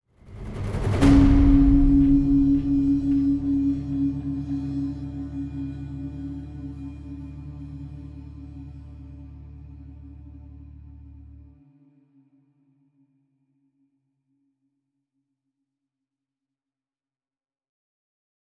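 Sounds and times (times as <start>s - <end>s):
sad music loop: 1.0s - 9.2s.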